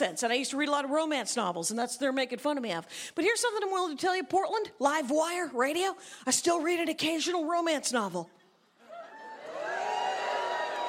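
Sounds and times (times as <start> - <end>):
speech: 0.0 - 8.4
audience mixed booing and cheering: 8.9 - 10.8.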